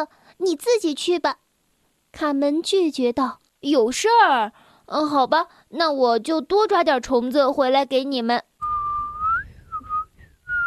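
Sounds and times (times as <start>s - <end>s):
speech: 0.0s - 1.4s, 2.1s - 8.5s
person whistling a tune: 8.6s - 10.6s.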